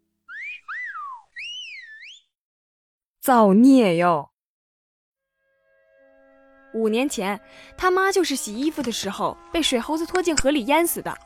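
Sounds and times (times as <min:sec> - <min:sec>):
person whistling: 0:00.3 - 0:02.3
speech: 0:03.2 - 0:04.3, 0:06.8 - 0:11.2.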